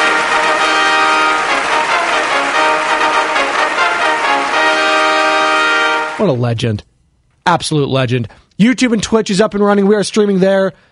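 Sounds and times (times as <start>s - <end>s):
trumpet fanfare sound effect: 0.0s - 6.4s
speech: 6.2s - 10.9s.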